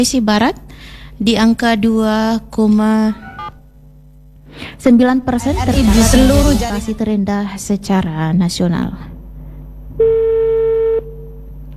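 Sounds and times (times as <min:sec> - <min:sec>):
speech: 0:00.0 - 0:00.6, 0:01.2 - 0:03.2, 0:04.6 - 0:09.1
telephone tone while calling a reporter: 0:03.1 - 0:03.6, 0:10.0 - 0:11.1
low lingering hum: 0:05.2 - 0:07.4.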